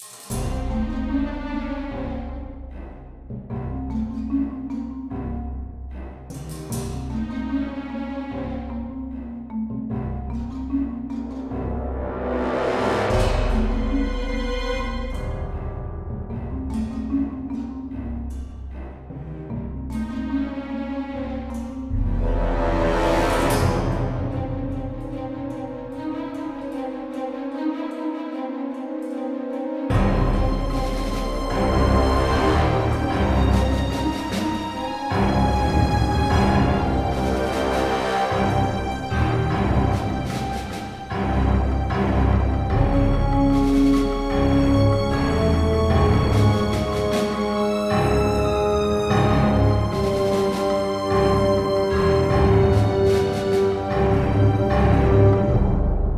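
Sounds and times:
space battle music: 0.3 - 56.1.

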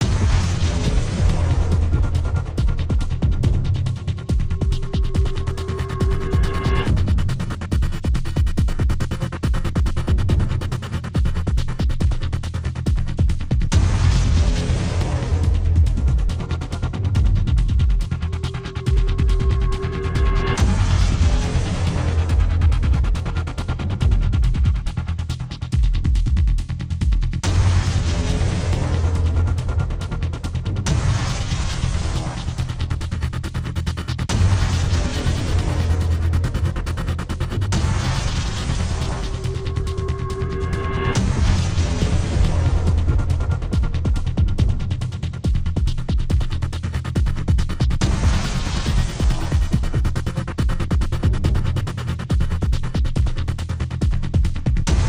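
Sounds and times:
battle music loop: 0.0 - 55.0.

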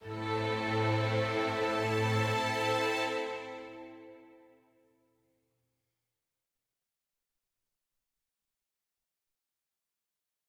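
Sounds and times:
sad forte music ending: 0.0 - 4.4.

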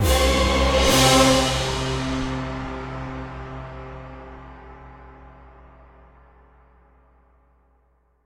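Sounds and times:
boss appearance jingle: 0.0 - 4.7.

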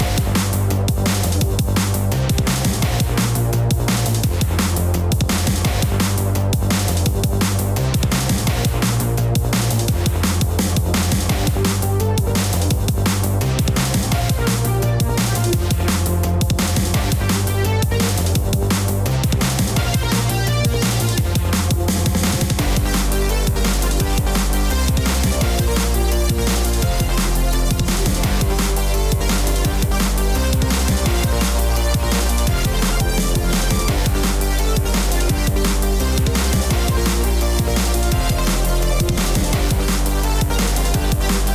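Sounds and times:
bass: 0.0 - 41.5.

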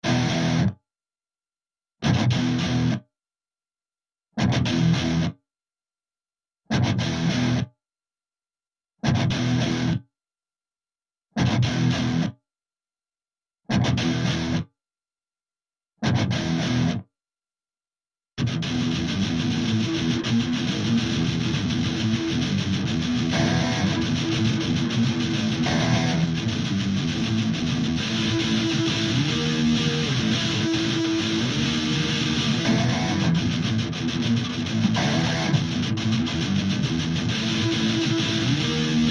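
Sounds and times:
guitar riff: 0.0 - 0.8, 2.0 - 3.0, 4.4 - 5.3, 6.7 - 7.6, 9.0 - 10.0, 11.4 - 12.3, 13.7 - 14.6, 16.0 - 17.0, 18.4 - 39.0.

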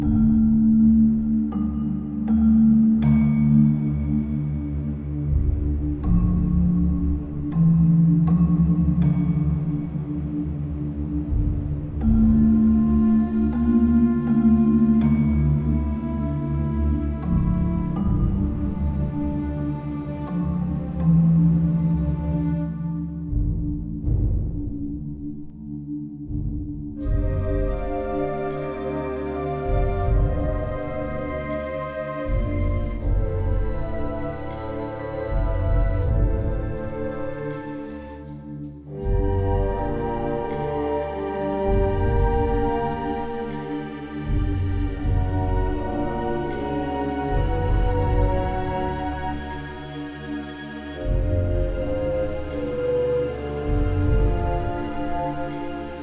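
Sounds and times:
RPG fantasy cave dungeon exploration music loop: 0.0 - 56.0.

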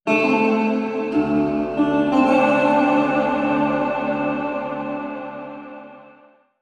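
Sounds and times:
guitar: 0.0 - 6.4.

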